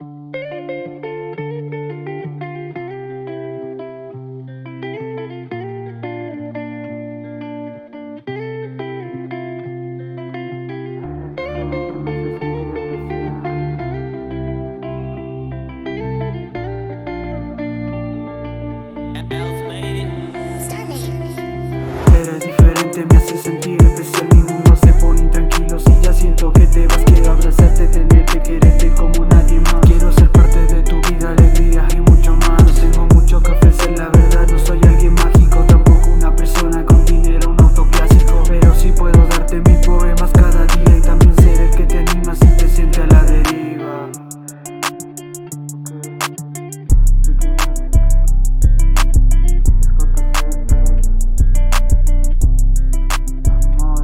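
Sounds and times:
rap music: 19.1s - 54.0s.

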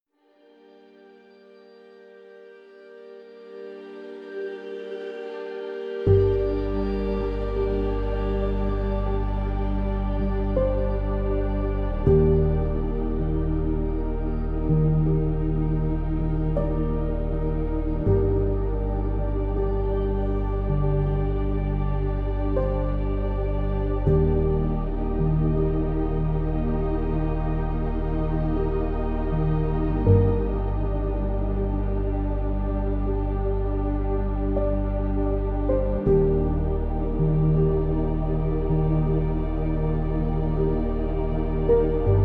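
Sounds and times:
chill out Celtic harp music: 0.5s - 42.2s.

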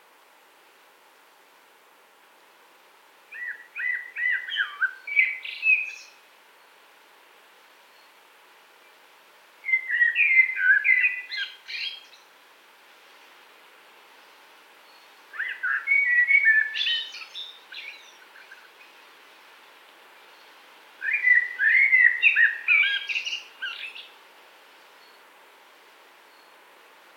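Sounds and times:
common blackbird song: 3.3s - 6.2s, 9.6s - 12.3s, 14.2s - 19.2s, 20.2s - 24.2s.

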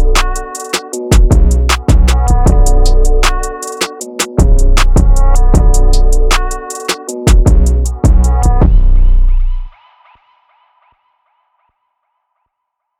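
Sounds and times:
boosted bass: 0.0s - 3.6s, 4.4s - 6.7s, 7.3s - 9.7s.

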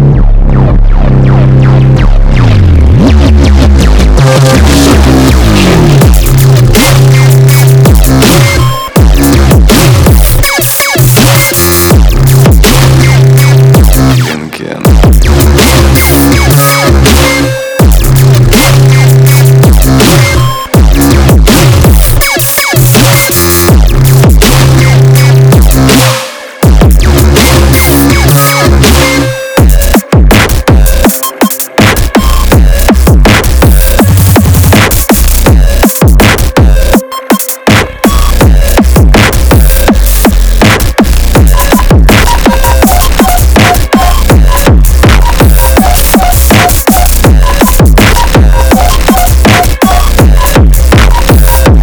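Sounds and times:
beats: 0.1s - 51.8s.

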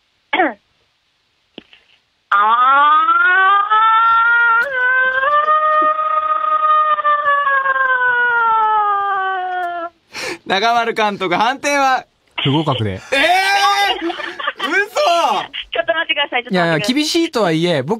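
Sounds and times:
voice imitating the Koshien stadium siren: 2.3s - 9.9s
speech: 10.5s - 13.2s, 16.4s - 17.9s
laughter: 12.5s - 15.8s.

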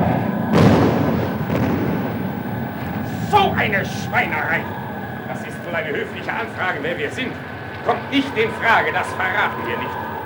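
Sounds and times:
falling bombs exploding: 0.0s - 5.7s
droning noise: 0.0s - 10.2s
speech: 3.6s - 4.8s, 5.7s - 10.0s.

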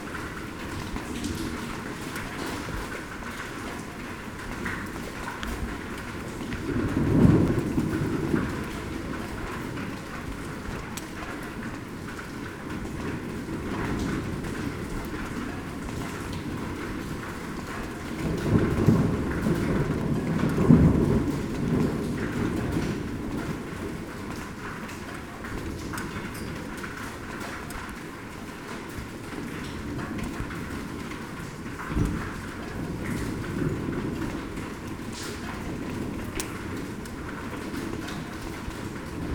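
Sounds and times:
draining rain: 0.0s - 39.3s.

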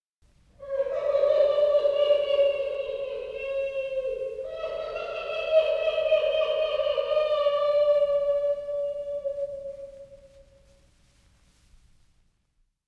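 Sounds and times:
scary witch sound effects: 0.6s - 10.3s.

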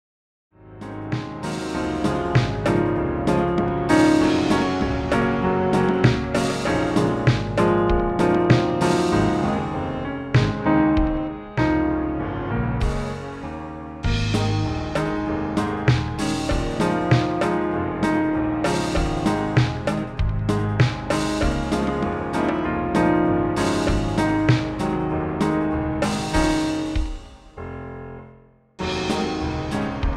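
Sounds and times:
upbeat love music: 0.7s - 12.2s, 12.8s - 27.4s, 28.8s - 30.1s.

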